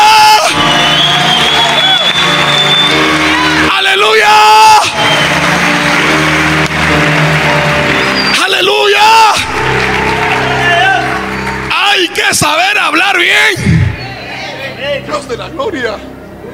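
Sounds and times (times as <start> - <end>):
audience applause: 0.0 - 13.0
audience cheering: 0.0 - 14.7.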